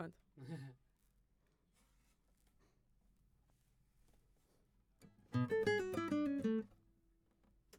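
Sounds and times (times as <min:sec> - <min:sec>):
guitar: 0:05.0 - 0:07.7.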